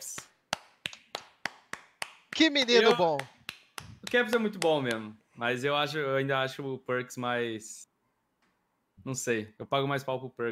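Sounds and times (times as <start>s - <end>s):
sharp crisp hand claps: 0.0s - 5.1s
speech: 2.4s - 3.3s, 4.1s - 7.9s, 9.0s - 10.5s.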